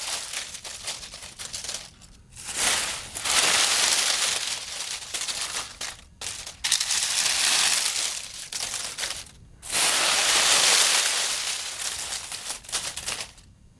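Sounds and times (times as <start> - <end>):
hands parting dead leaves: 0.0 - 13.5.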